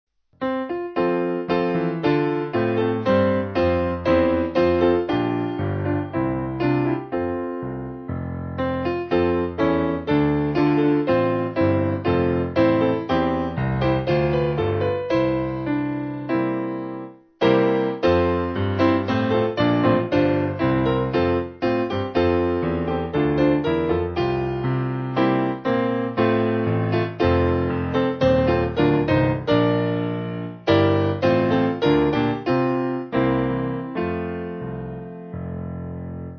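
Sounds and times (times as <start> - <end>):
church music piano backing: 0.4 - 36.3.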